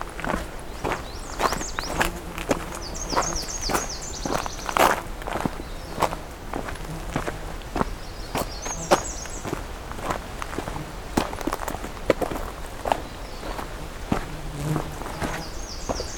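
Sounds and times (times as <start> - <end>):
bird calls: 0.0 - 9.6, 12.8 - 16.1
footsteps crunching through a cedar swamp: 0.0 - 16.1.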